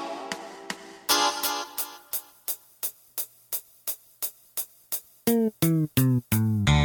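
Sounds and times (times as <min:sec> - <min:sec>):
drum: 0:00.3 - 0:06.7.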